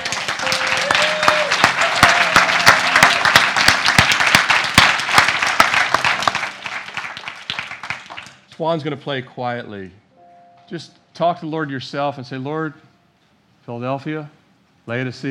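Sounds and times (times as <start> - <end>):
applause: 0.0 - 8.5
speech: 8.6 - 10.0, 10.7 - 12.9, 13.6 - 15.2.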